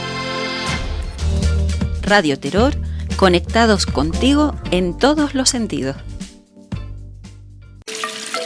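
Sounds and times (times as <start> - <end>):
low humming: 0.7 - 7.8
speech: 2.1 - 6.1
water running from a tap: 7.8 - 8.4.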